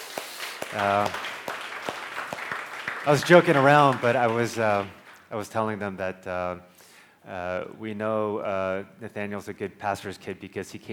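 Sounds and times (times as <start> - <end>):
audience applause: 0.0 - 5.2
speech: 0.7 - 1.3, 3.1 - 10.9.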